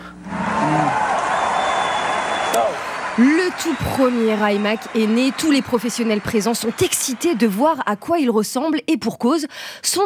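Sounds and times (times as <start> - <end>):
excited crowd cheering: 0.3 - 8.2
speech: 3.2 - 10.0.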